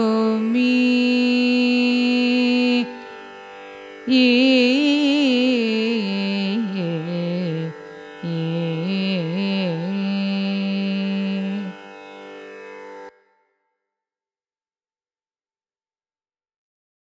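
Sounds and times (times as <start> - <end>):
Carnatic raga vachaspati music: 0.0 - 13.6.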